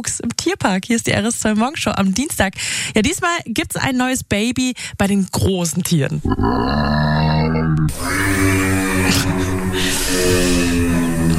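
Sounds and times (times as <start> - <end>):
speech: 0.0 - 11.0
giraffe vocalization: 6.2 - 11.3.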